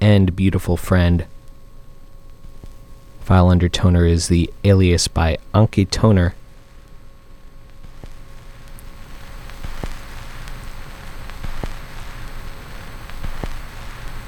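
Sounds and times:
speech: 0.0s - 1.4s, 3.3s - 6.4s
vinyl record surface hiss and crackle at its end: 6.4s - 14.2s.

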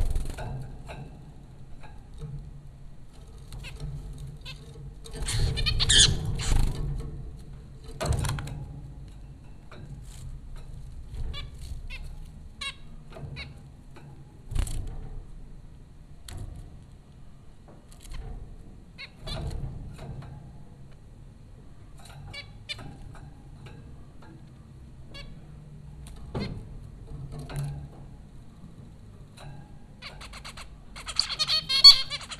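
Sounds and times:
steady low hum: 0.0s - 32.3s
zebra finch calls: 5.2s - 6.6s, 30.1s - 32.3s.

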